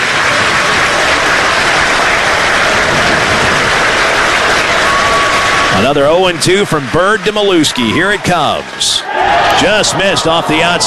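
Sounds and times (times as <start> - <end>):
Georgia stadium fans clapping: 0.0 - 10.8
speech: 5.8 - 10.8.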